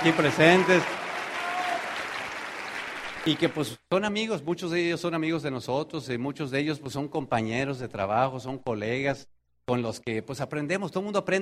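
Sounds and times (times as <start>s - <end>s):
speech: 0.0s - 1.0s, 3.2s - 11.3s
crowd applause: 0.0s - 3.8s.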